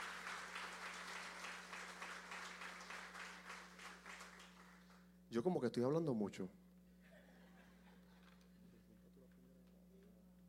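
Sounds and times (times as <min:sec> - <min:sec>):
audience applause: 0:00.0 - 0:05.0
speech: 0:05.3 - 0:06.6
laughter: 0:07.0 - 0:08.9.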